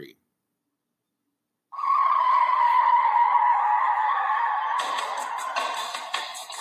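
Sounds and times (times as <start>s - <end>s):
car tires screeching sound effect: 1.8s - 6.2s.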